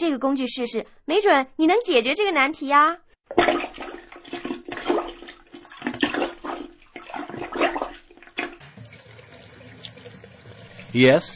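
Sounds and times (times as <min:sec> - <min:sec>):
speech: 0:00.0 - 0:03.8, 0:10.9 - 0:11.3
bathtub water draining after being cleared with a plunger: 0:03.3 - 0:11.3.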